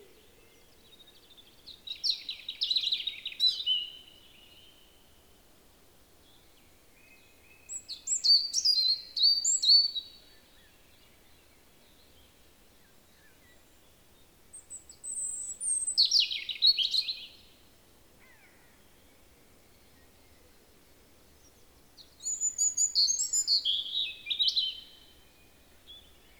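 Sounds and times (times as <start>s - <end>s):
European robin singing: 0.1s - 5.0s, 6.3s - 12.3s, 14.5s - 17.6s, 21.3s - 26.3s.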